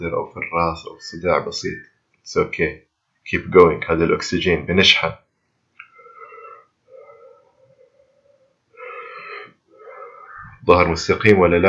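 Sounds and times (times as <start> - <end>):
speech: 0.0 - 5.2, 10.7 - 11.6
deep rhythmic breathing during a Wim Hof breathing exercise: 5.4 - 10.7.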